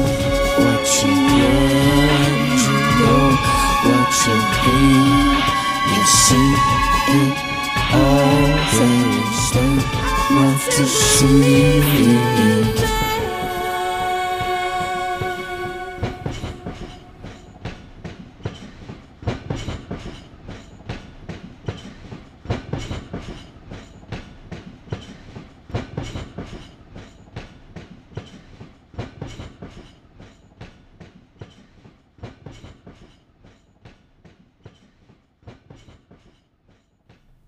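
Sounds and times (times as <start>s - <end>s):
locomotive horn: 0.0s - 17.6s
speeding train wagons wheels rattling over rail joints: 0.0s - 37.4s
speech: 0.8s - 13.0s.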